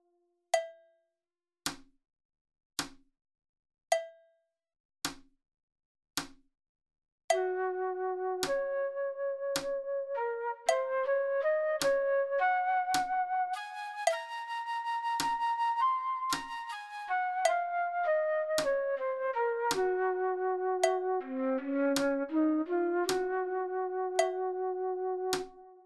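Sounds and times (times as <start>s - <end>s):
flute practice playback: 7.4s - 25.8s.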